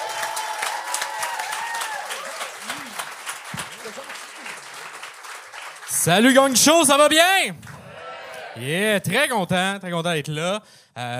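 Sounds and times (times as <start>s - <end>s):
audience whooping and shouting at a live comedy show: 0.0s - 3.0s, 7.7s - 8.6s
audience applause welcoming a guest at a live comedy show: 0.0s - 8.5s
speech: 6.0s - 7.7s, 8.6s - 11.1s.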